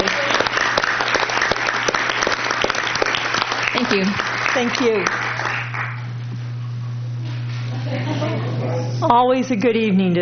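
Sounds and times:
audience applause: 0.0 - 6.1
speech: 3.9 - 5.2, 9.0 - 10.1
laughter: 6.4 - 9.2.

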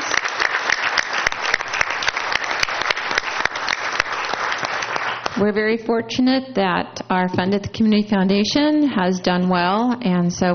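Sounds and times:
audience applause: 0.0 - 5.4
speech: 5.4 - 10.5.

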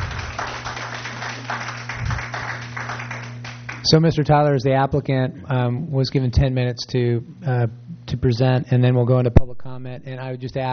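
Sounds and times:
scattered hand claps from a small audience: 0.0 - 4.0
steady low electrical hum: 0.0 - 10.7
speech: 3.9 - 10.7.

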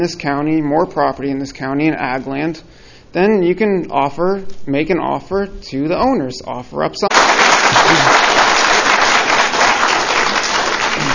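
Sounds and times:
speech: 0.0 - 7.3
applause in hearing chamber: 7.1 - 11.1.

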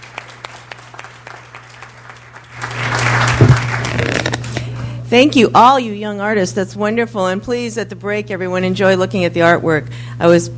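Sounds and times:
audience applause: 0.0 - 4.4
speech: 5.1 - 10.5.

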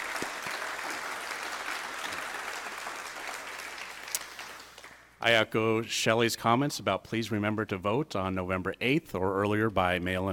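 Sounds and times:
audience applause: 0.0 - 5.0
speech: 5.2 - 10.3.

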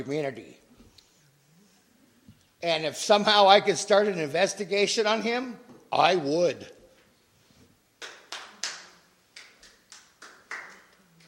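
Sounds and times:
speech: 0.0 - 0.6, 2.6 - 6.8
sparse audience clapping: 8.0 - 11.2.

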